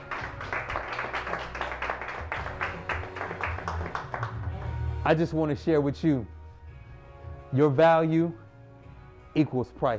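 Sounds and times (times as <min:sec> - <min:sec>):
audience clapping: 0:00.0 - 0:04.8
speech: 0:05.1 - 0:06.4, 0:07.5 - 0:08.4, 0:09.3 - 0:09.9.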